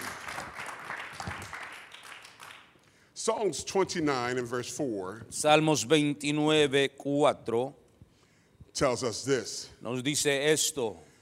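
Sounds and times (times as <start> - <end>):
audience clapping hands: 0.0 - 2.9
speech: 3.2 - 7.8, 8.8 - 11.1.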